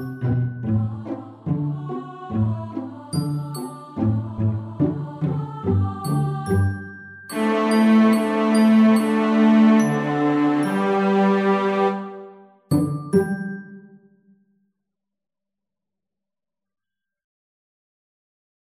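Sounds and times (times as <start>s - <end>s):
cello: 0.0s - 13.1s.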